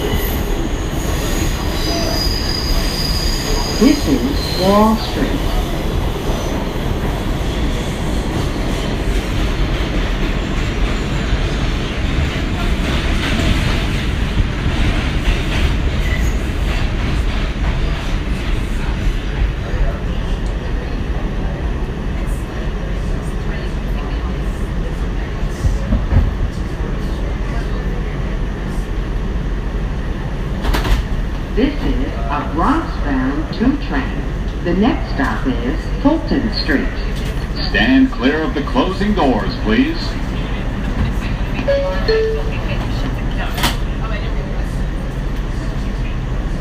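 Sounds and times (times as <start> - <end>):
subway train riding on rails: 0.0 - 46.5
speech: 3.8 - 5.5, 38.6 - 40.2.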